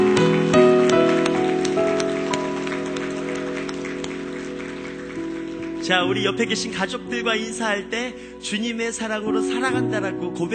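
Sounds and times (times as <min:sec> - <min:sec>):
church congregation clapping during a worship service: 0:00.0 - 0:07.8
sustained tonal music: 0:00.0 - 0:10.5
speech: 0:05.9 - 0:10.5.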